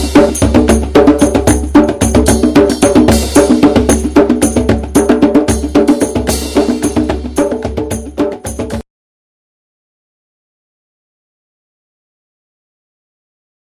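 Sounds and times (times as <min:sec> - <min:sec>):
groove music: 0:00.0 - 0:08.8.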